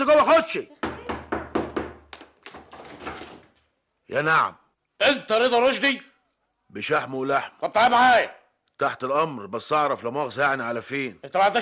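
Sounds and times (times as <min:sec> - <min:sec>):
speech: 0:00.0 - 0:00.8, 0:04.1 - 0:06.1, 0:06.7 - 0:11.6
heavy knocking on a door: 0:00.8 - 0:03.4.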